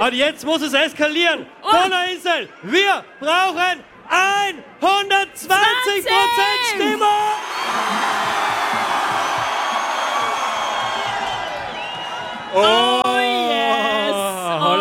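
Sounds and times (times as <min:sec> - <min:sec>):
speech: 0:00.0 - 0:08.1, 0:12.5 - 0:13.0
festival audience cheering: 0:05.4 - 0:14.6
festival audience applauding: 0:05.5 - 0:13.5.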